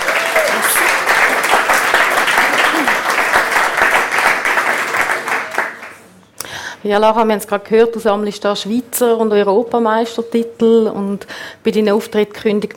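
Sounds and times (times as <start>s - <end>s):
audience applause: 0.0s - 6.0s
speech: 6.8s - 12.7s.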